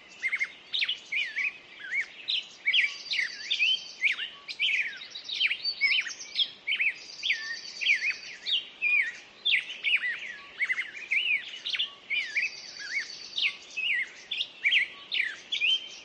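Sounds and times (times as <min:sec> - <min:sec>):
birds singing at dawn: 0:00.0 - 0:16.0.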